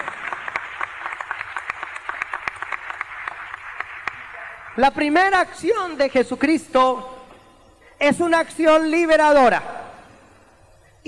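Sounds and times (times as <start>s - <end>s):
crowd clapping: 0.0s - 6.2s
speech: 4.8s - 7.1s, 8.0s - 9.7s.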